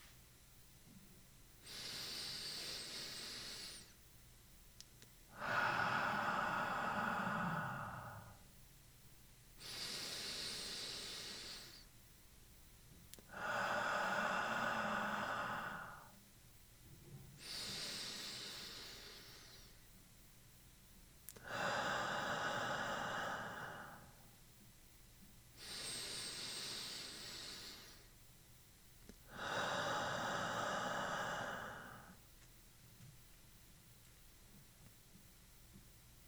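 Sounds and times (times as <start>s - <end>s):
slow breathing exercise: 1.6s - 4.0s, 5.3s - 8.5s, 9.6s - 11.9s, 13.2s - 16.2s, 17.0s - 20.0s, 21.3s - 24.4s, 25.6s - 28.2s, 29.3s - 32.2s.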